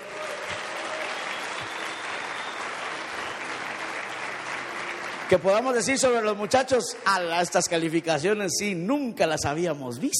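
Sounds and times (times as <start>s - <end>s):
audience applause: 0.0s - 7.9s
speech: 5.3s - 10.1s.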